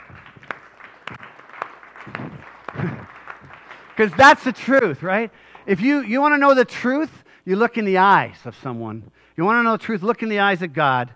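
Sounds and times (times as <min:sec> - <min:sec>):
audience clapping: 0:00.0 - 0:06.1
speech: 0:04.0 - 0:11.1.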